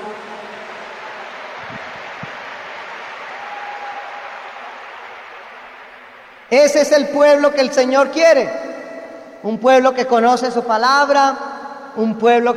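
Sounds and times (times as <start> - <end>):
audience applause in a coliseum: 0.0 - 6.7
speech: 6.5 - 8.7, 9.4 - 12.5.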